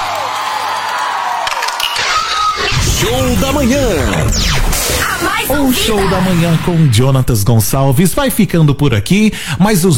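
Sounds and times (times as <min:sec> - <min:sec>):
crowd cheering for a Brazilian singer at a show: 0:00.0 - 0:03.6
speech: 0:03.0 - 0:09.9.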